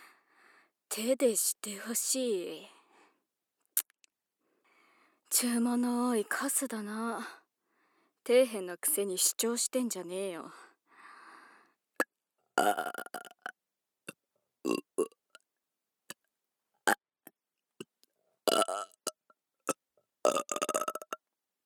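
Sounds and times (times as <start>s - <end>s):
speech: 1.0s - 2.8s, 5.3s - 7.4s, 8.2s - 10.6s, 12.6s - 13.3s
person burping: 12.6s - 13.5s, 14.7s - 15.2s, 18.5s - 19.0s, 19.7s - 21.2s.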